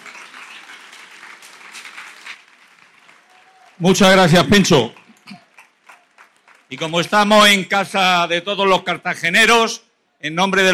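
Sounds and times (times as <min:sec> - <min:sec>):
crowd applauding: 0:00.0 - 0:08.0
speech: 0:03.8 - 0:05.0, 0:06.7 - 0:10.7.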